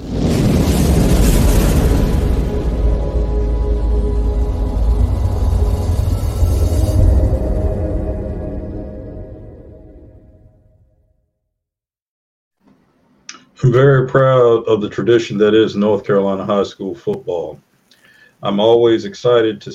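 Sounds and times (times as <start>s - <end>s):
fire being started: 0.0s - 8.8s
speech: 13.7s - 17.7s, 18.4s - 19.7s.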